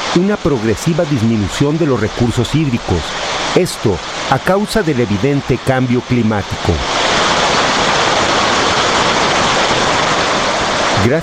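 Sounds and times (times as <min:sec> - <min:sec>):
rain in Mexico City: 0:00.0 - 0:11.2
speech: 0:00.2 - 0:07.0, 0:11.0 - 0:11.2.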